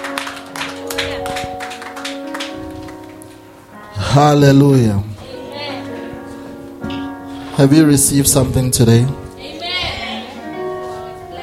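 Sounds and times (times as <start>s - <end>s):
audience clapping: 0.0s - 3.5s
speech: 4.2s - 5.1s, 7.6s - 9.2s.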